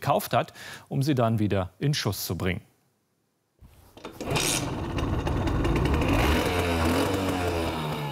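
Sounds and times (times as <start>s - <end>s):
speech: 0.1s - 2.7s
Simson moped two-stroke engine rattling: 4.1s - 8.1s.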